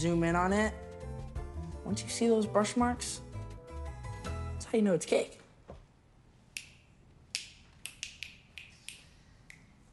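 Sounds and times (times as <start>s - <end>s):
speech: 0.0s - 0.8s, 1.8s - 3.2s, 4.7s - 5.4s
finger snapping: 6.6s - 9.7s.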